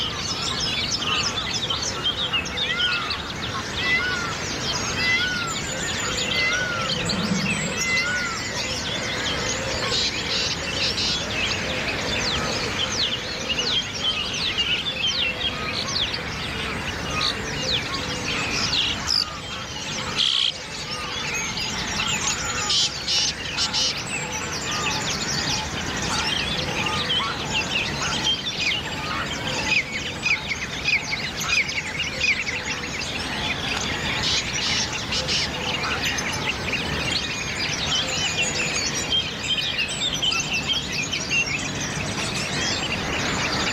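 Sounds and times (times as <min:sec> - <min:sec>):
dawn chorus of many birds in St Anne's Park near Bull Island, Dublin: 0:00.0 - 0:43.7.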